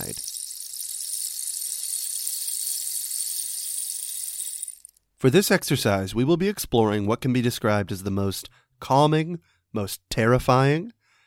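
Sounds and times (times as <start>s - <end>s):
rain stick rattling: 0.0s - 5.0s
speech: 5.2s - 11.0s.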